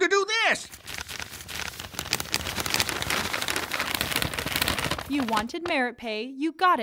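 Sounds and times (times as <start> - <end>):
speech: 0.5 - 0.8, 5.2 - 6.8
tons of paper pouring out of wheelbarrows: 0.7 - 5.7.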